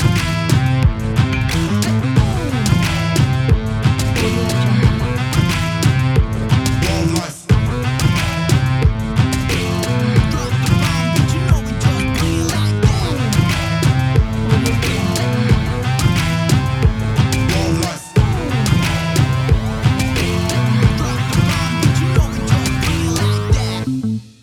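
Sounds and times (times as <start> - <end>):
epic cinematic party hip hop music: 0.0 - 24.1.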